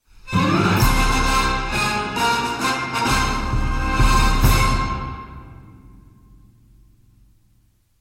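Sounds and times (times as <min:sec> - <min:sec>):
orchestral victory music: 0:00.3 - 0:06.2.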